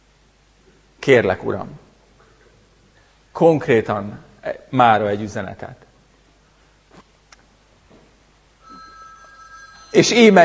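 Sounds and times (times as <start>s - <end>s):
speech: 1.0s - 1.8s, 3.4s - 5.9s, 9.9s - 10.4s
telephone ringing with a steady electronic ring tone: 8.6s - 10.4s.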